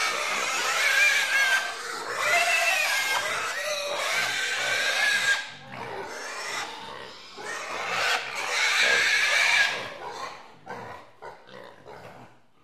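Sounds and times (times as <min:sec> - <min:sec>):
pigs in a pigsty: 0:00.0 - 0:12.6.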